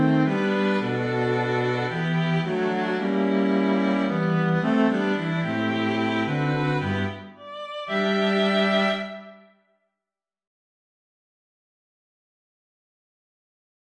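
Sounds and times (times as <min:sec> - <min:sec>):
music piece from a full score: 0:00.0 - 0:09.6.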